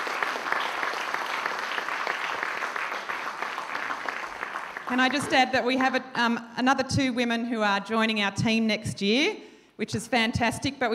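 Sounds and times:
large group clapping: 0.0 - 5.6
speech: 4.9 - 10.9.

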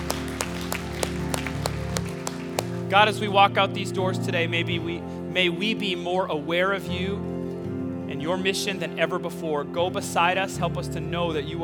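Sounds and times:
church congregation clapping in celebration: 0.0 - 3.2
sustained music tones: 0.0 - 3.5
speech: 2.9 - 7.3, 8.1 - 11.6.

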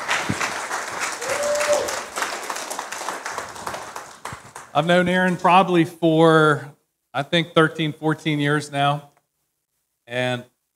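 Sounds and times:
audience applause welcoming a speaker at a City Reach gathering: 0.0 - 5.4
speech: 4.8 - 9.1, 10.1 - 10.5.

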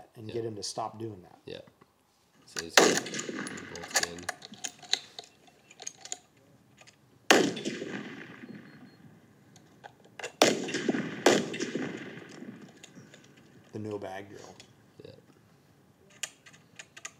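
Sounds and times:
speech: 0.2 - 1.8, 2.5 - 4.6, 13.8 - 14.7
rifle shots: 2.7 - 4.7, 7.3 - 9.0, 10.3 - 13.6.

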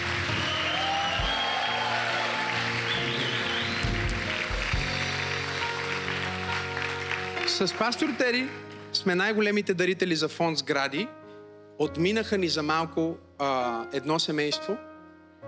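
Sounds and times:
people cheering: 0.0 - 7.6
audience applause: 0.0 - 8.3
speech: 7.6 - 11.2, 11.8 - 15.4.

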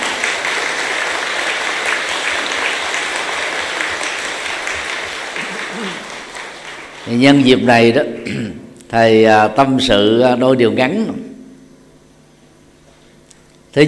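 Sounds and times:
applause: 0.0 - 7.7
speech: 7.1 - 11.3.

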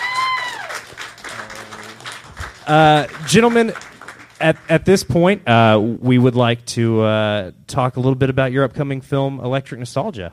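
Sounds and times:
audience applause: 0.0 - 5.3
speech: 2.7 - 10.3.

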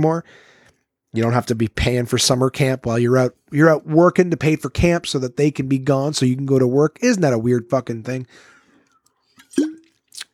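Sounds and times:
speech: 0.0 - 8.5, 9.6 - 9.8
breathy exhale: 0.3 - 0.7, 8.3 - 8.9
person sipping and gulping water: 8.8 - 10.3.

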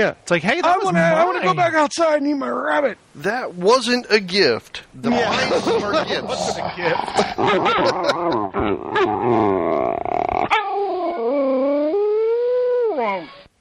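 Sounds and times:
speech: 0.0 - 10.9
laughter: 5.1 - 8.6
dog whining and grunting for her rope put out of reach: 6.4 - 13.5.

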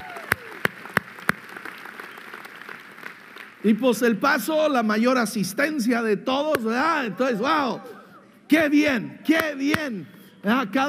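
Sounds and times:
audience applause: 0.0 - 3.6
speech: 3.6 - 10.8.

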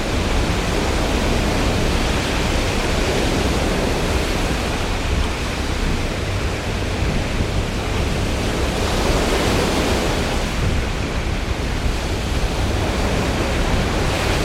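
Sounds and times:
stormy sea roaring: 0.0 - 14.4.

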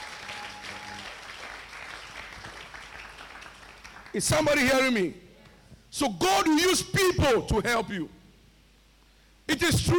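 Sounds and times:
audience clapping hands: 0.0 - 4.6
speech: 4.2 - 5.2, 5.9 - 8.2, 9.6 - 9.9.

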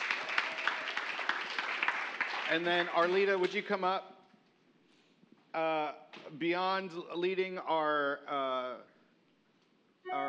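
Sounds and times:
people clapping: 0.0 - 3.9
speech: 2.5 - 4.2, 5.5 - 8.9, 10.0 - 10.2.

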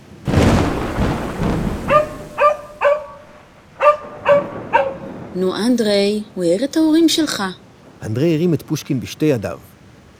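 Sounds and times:
loud thunderclap: 0.0 - 7.0
speech: 5.4 - 9.7.

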